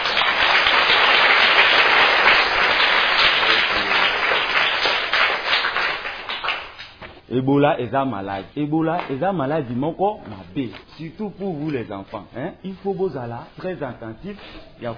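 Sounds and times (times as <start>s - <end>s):
audience applause at a street awareness event about Ebola: 0.0s - 6.8s
speech: 7.3s - 14.9s.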